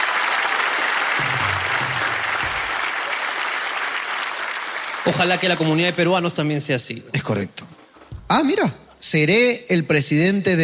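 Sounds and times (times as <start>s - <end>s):
loud applause: 0.0s - 6.0s
speech: 5.0s - 10.6s.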